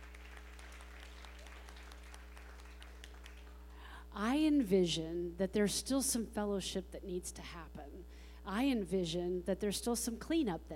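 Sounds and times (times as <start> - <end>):
audience applause: 0.0 - 3.7
speech: 4.2 - 10.7.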